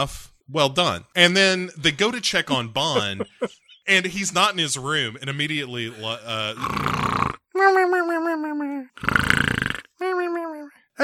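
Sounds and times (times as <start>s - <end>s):
speech: 0.0s - 11.0s
laughter: 2.8s - 4.4s
voice imitating comedic snoring: 5.9s - 7.9s, 8.9s - 10.2s.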